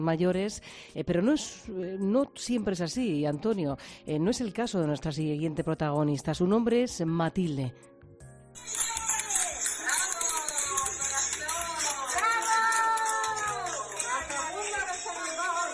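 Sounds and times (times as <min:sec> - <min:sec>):
speech: 0:00.0 - 0:07.9
nurses and health workers applauding: 0:08.6 - 0:15.7.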